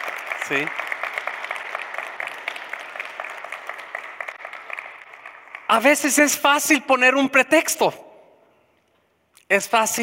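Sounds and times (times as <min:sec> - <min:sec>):
audience applauding: 0:00.0 - 0:06.3
speech: 0:00.5 - 0:00.8, 0:05.7 - 0:08.0, 0:09.5 - 0:10.0.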